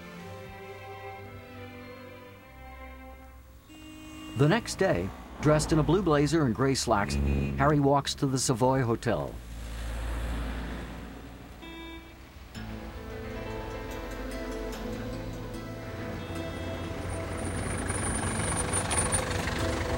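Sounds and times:
taxi engine pulling into the Savoy Hotel forecourt: 0.6 - 19.9
speech: 4.4 - 9.5.

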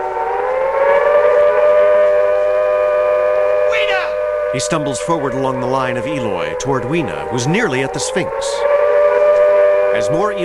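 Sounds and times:
loud siren wailing: 0.0 - 10.4
speech: 4.6 - 8.7, 10.0 - 10.4.

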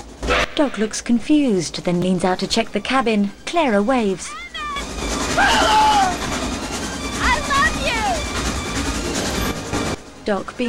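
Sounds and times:
train rumbling along its rails: 0.0 - 10.6
speech: 0.6 - 4.4, 10.3 - 10.6
loud excited voices shouting: 5.4 - 6.3, 7.2 - 8.3.

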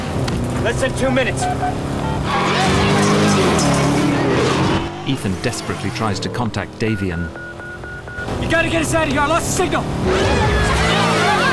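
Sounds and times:
cars speeding through traffic in a chase: 0.0 - 11.5
tyres squealing: 0.1 - 11.5
speech: 0.6 - 3.0, 5.1 - 7.4, 8.2 - 10.6.

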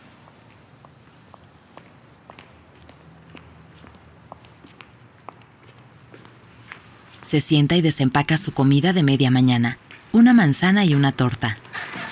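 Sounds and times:
soft footsteps of someone walking: 0.0 - 7.6
speech: 7.3 - 11.6.

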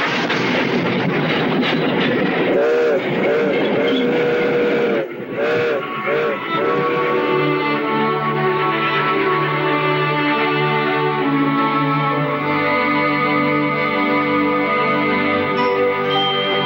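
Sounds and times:
train rolling across windswept prairie: 0.0 - 16.6
train whistle blasts: 2.5 - 8.8.

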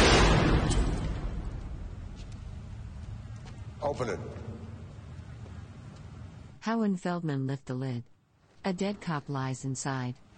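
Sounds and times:
gunshots from a man emptying his gun into a casket: 0.0 - 2.0
speech: 3.8 - 4.5, 6.6 - 10.2.

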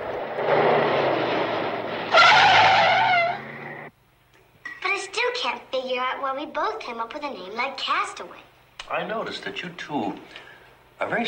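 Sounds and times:
car engine rumble and high whine as car drives off hastily: 0.0 - 3.9
speech: 5.8 - 11.2.

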